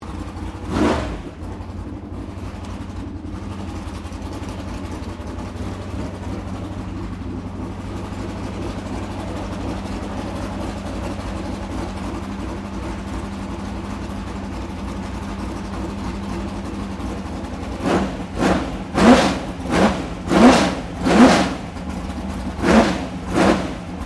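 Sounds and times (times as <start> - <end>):
F500 car engine idling and revving: 0.0 - 24.0.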